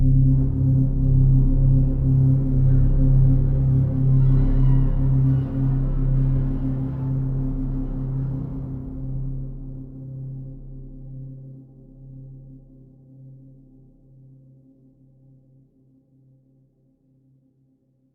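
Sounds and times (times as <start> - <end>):
day ambient music stinger: 0.2 - 11.1.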